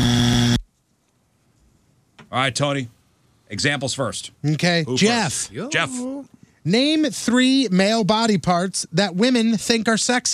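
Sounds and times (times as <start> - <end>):
quiz game penalty buzzer: 0.0 - 0.6
speech: 2.3 - 10.3.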